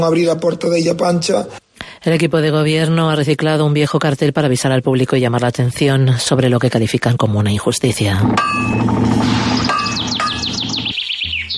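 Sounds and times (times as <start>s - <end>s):
speech: 0.0s - 9.8s
European robin chirping: 9.4s - 11.5s.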